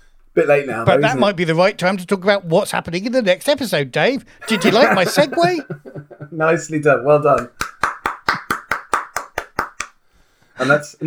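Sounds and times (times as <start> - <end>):
speech: 0.4 - 7.6, 10.6 - 11.0
laughter: 4.4 - 6.4
one person clapping hands: 7.4 - 10.0.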